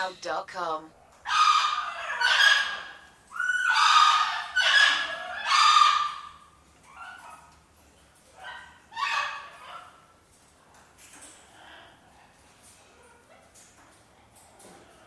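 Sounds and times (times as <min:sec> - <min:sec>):
speech: 0:00.0 - 0:01.4
bird harsh squawks: 0:01.3 - 0:06.4.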